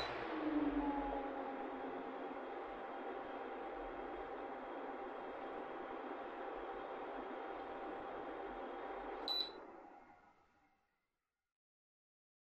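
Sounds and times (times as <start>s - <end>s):
electric fan: 0.0s - 9.3s.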